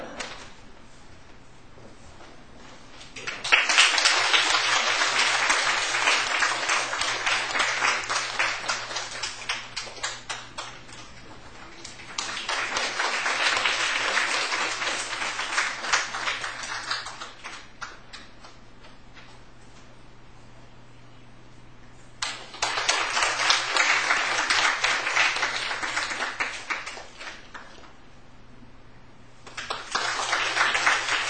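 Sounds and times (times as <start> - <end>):
audience applause: 3.2 - 17.7, 22.2 - 27.8, 29.5 - 31.2.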